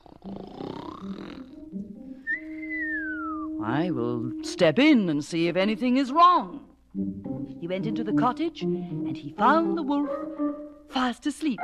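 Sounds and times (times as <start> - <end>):
old woman snoring loudly: 0.0 - 1.6
speech: 3.6 - 11.6.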